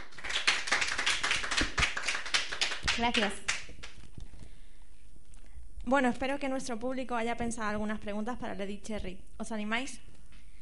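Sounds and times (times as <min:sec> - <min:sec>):
audience applause: 0:00.0 - 0:03.3
speech: 0:03.0 - 0:03.5, 0:05.8 - 0:10.1.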